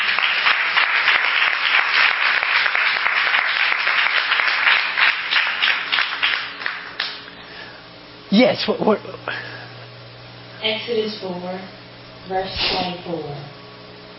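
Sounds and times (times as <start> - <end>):
audience clapping hands: 0.0 - 7.4
speech: 8.4 - 9.5, 10.6 - 13.6.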